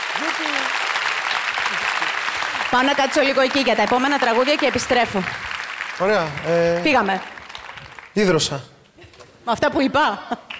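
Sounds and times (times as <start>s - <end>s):
audience applause: 0.0s - 8.4s
speech: 0.2s - 0.9s, 2.7s - 7.4s, 8.2s - 8.7s, 9.5s - 10.5s.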